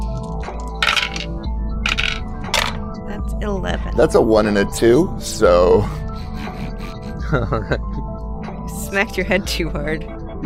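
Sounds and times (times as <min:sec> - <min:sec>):
dice being rolled on table: 0:00.8 - 0:01.3, 0:01.9 - 0:02.8
speech: 0:03.4 - 0:06.0, 0:07.3 - 0:07.9, 0:08.9 - 0:10.4
laughter: 0:05.5 - 0:08.0.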